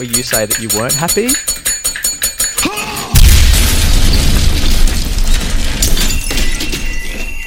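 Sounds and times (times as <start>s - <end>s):
speech: 0.0s - 1.7s
bell struck rapidly: 0.0s - 2.6s
massive bomb explosion rumbling with debris: 3.1s - 6.2s.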